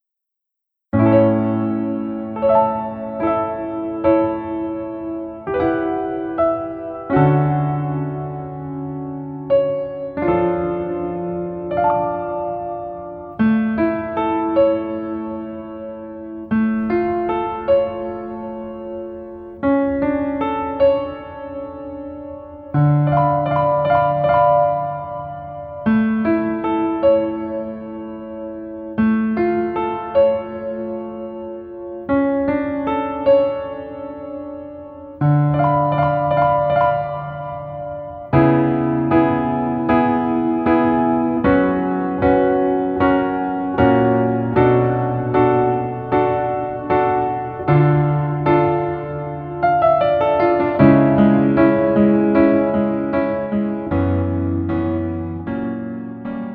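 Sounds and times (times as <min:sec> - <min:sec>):
piano: 0:00.0 - 0:56.5.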